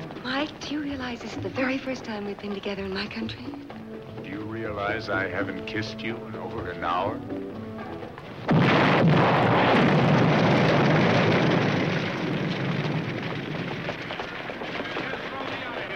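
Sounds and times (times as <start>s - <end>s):
speech: 0.4s - 3.7s, 4.7s - 7.4s
car exploding: 8.2s - 15.9s.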